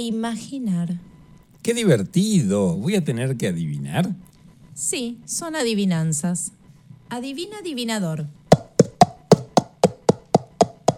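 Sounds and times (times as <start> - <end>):
speech: 0.0 - 8.4
horse hooves: 8.5 - 10.9.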